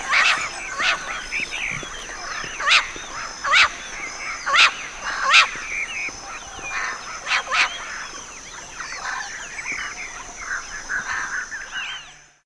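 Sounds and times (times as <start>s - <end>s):
birds chattering calls: 0.0s - 12.4s.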